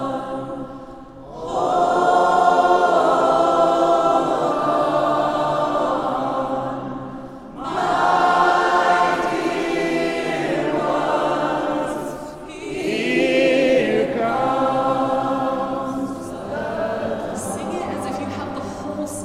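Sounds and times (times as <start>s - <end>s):
people singing in a church: 0.0s - 19.2s.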